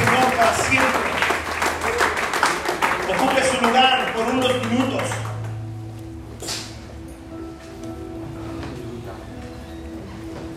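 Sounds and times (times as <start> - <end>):
crowd applause: 0.0 - 5.6.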